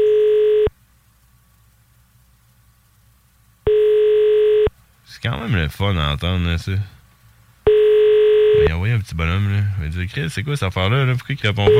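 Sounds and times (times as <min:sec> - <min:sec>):
ringback tone from an outgoing phone call: 0:00.0 - 0:00.7, 0:03.7 - 0:04.7, 0:07.7 - 0:08.7
faint low hum: 0:00.0 - 0:11.7
speech: 0:05.2 - 0:07.0, 0:08.7 - 0:11.7.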